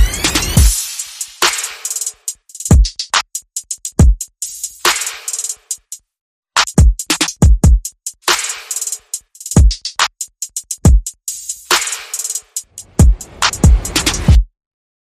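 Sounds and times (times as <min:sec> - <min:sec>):
percussion and effects: 0:00.0 - 0:03.4, 0:06.6 - 0:14.4.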